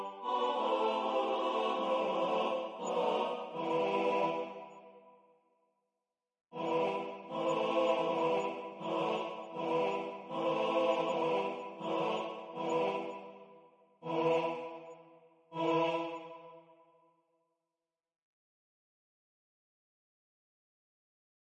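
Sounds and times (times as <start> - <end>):
SATB four-part choir singing: 0.0 - 5.1, 6.6 - 16.7.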